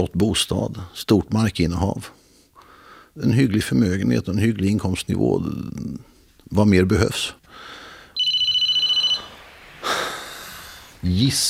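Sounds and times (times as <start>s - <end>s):
speech: 0.0s - 2.2s, 3.2s - 7.8s, 11.0s - 11.4s
soft breathy rustle or exhale: 7.5s - 8.2s, 9.2s - 11.0s
telephone ringtone ringing: 8.2s - 9.5s.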